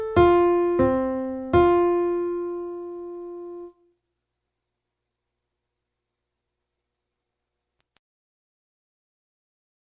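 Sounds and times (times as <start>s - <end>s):
soprano in F major: 0.1s - 3.8s.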